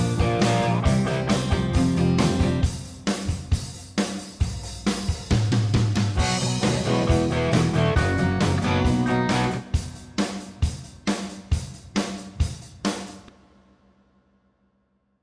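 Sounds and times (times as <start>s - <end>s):
major-key rock music harmony: 0.0s - 13.2s.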